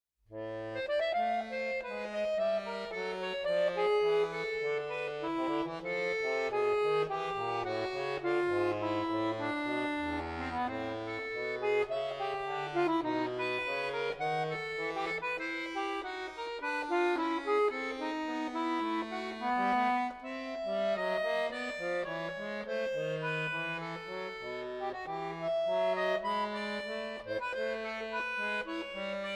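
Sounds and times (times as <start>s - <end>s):
prelude in A minor: 0.3s - 29.3s.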